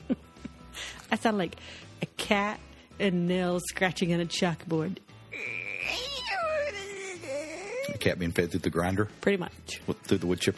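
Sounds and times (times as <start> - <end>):
speech: 1.1 - 5.6, 8.0 - 10.5
dog squeaking and whining: 5.4 - 8.0.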